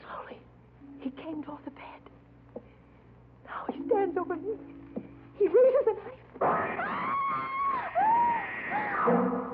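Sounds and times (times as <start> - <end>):
speech: 1.0 - 2.2, 3.5 - 4.8, 5.4 - 8.0
woman screaming in terror: 6.5 - 9.1.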